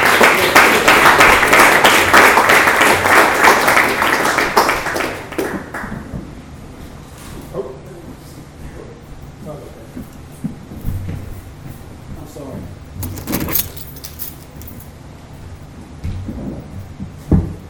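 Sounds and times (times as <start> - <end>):
audience round of applause: 0.0 - 6.0.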